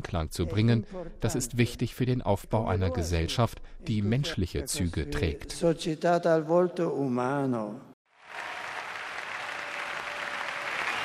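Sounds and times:
speech: 0:00.1 - 0:08.5
crowd applause: 0:08.2 - 0:11.0.

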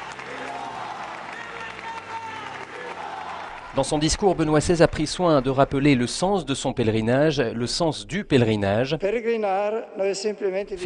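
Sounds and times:
crowd applause in cathedral: 0:00.0 - 0:06.4
speech: 0:03.7 - 0:10.8.

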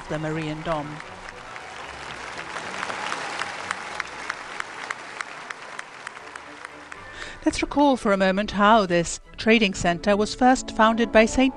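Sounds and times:
crowd of faithful cheering and applauding for the Pope: 0:00.0 - 0:07.3
speech: 0:00.1 - 0:01.1, 0:07.4 - 0:11.5.

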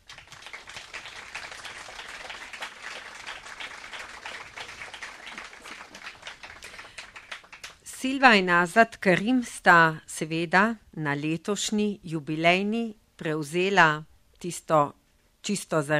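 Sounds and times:
crowd applauding: 0:00.0 - 0:07.8
speech: 0:08.0 - 0:15.9.

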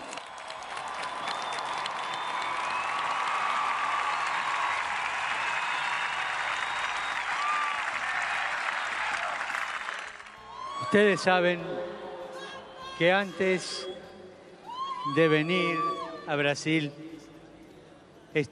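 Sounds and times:
applause from a large audience: 0:00.0 - 0:10.4
scattered cheers: 0:00.0 - 0:11.4
whistle: 0:01.2 - 0:03.2, 0:05.6 - 0:07.6
speech: 0:10.9 - 0:11.9, 0:13.0 - 0:13.9, 0:15.1 - 0:17.0.

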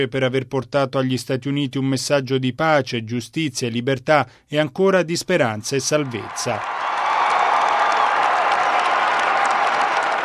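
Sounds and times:
speech: 0:00.0 - 0:07.0
loud sustained applause from the faithful: 0:06.0 - 0:10.2.

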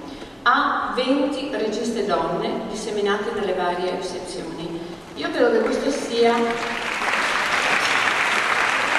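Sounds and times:
speech: 0:00.5 - 0:06.8
audience applause at a film festival event: 0:06.4 - 0:08.9.

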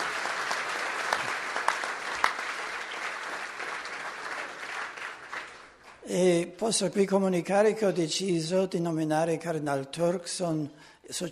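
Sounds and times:
audience applause: 0:00.0 - 0:06.0
speech: 0:06.1 - 0:11.3.

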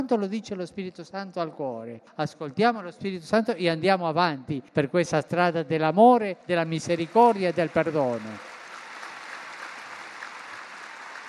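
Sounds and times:
speech: 0:00.0 - 0:08.5
applause of 100,000 people in Piazza San Pietro: 0:06.8 - 0:11.2.

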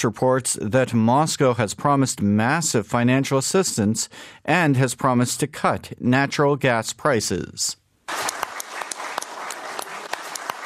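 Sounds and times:
speech: 0:00.0 - 0:08.3
applause at the Kremlin: 0:08.1 - 0:10.6.

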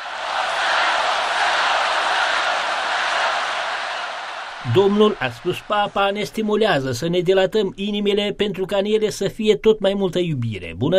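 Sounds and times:
stadium crowd chanting: 0:00.0 - 0:06.4
speech: 0:04.6 - 0:10.9.

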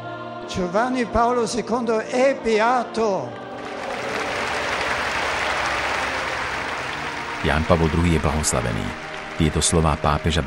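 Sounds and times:
speech: 0:00.5 - 0:03.4, 0:07.4 - 0:10.4
strong long applause from crowd: 0:03.4 - 0:10.4.

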